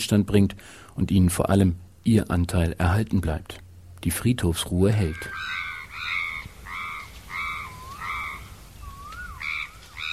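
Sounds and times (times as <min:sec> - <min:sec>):
speech: 0:00.0 - 0:05.6
crows cawing over the India Lake Hotel in Yangon: 0:05.0 - 0:10.1.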